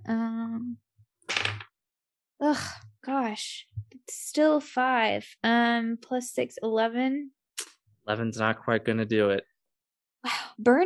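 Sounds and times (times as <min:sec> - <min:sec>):
dice tumbling across a surface: 0:01.3 - 0:01.6
speech: 0:02.5 - 0:07.4, 0:08.1 - 0:09.5, 0:10.2 - 0:10.8
voice-like tone: 0:08.1 - 0:09.4.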